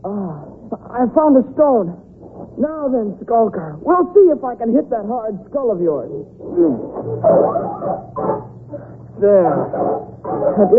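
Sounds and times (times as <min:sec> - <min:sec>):
speech: 0:00.9 - 0:08.4, 0:09.2 - 0:10.7
wolves growling and barking: 0:07.0 - 0:10.7.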